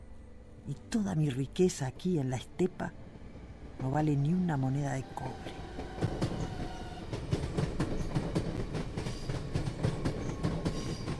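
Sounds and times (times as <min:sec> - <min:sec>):
speech: 0:00.7 - 0:03.0, 0:03.8 - 0:05.9
train rushing past with clattering wheels: 0:02.7 - 0:11.1.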